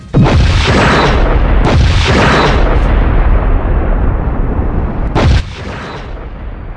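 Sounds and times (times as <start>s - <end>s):
spaceship collision explosive impact with booming rumble: 0.0s - 6.7s
crackling debris: 0.3s - 6.7s.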